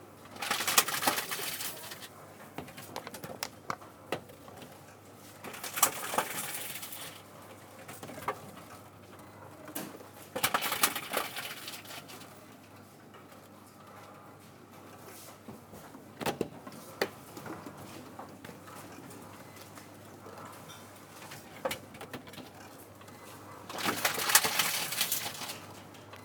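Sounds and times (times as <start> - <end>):
supermarket vending machine: 0.0 - 12.5, 20.5 - 26.2.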